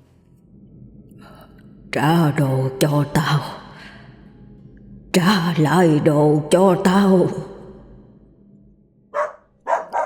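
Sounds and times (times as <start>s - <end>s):
low hum: 0.0s - 10.0s
speech: 1.2s - 3.6s, 5.2s - 7.5s
dog barking in the garden behind a house at night: 9.1s - 10.0s.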